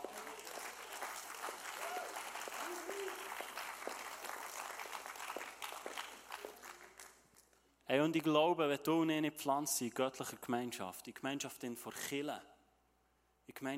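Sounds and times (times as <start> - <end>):
audience applause: 0.0 - 7.2
speech: 7.9 - 12.5, 13.5 - 13.7.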